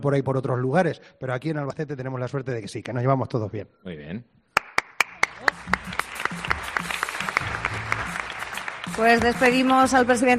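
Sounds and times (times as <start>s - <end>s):
speech: 0.0s - 4.4s, 9.0s - 10.3s
audience applause: 4.6s - 10.3s.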